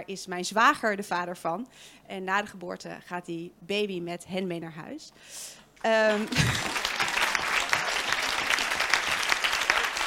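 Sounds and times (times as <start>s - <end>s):
speech: 0.0s - 6.8s
audience applause: 6.1s - 10.0s.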